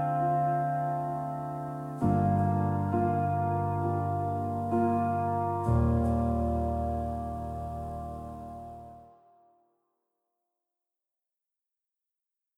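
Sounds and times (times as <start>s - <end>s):
piano prelude with stereo chorus effect: 0.0s - 9.4s.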